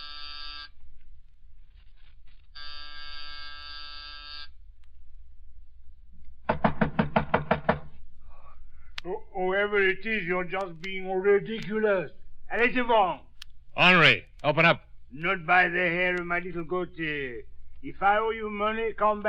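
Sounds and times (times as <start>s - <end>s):
buzzing doorbell: 0.0s - 0.7s, 2.6s - 4.5s
knocking on a door: 6.4s - 8.0s
speech: 9.5s - 19.2s.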